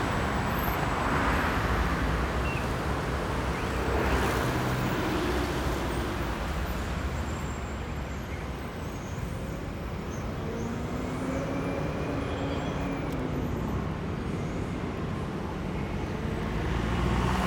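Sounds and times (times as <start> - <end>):
city traffic on an avenue in Buenos Aires by day: 0.0 - 17.4.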